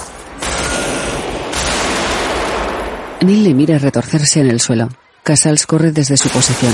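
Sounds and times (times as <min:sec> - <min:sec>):
gunfire in a police-and-robbers shootout scene in the 1995 film Heat: 0:00.3 - 0:04.8, 0:06.0 - 0:06.7
speech: 0:03.2 - 0:06.7.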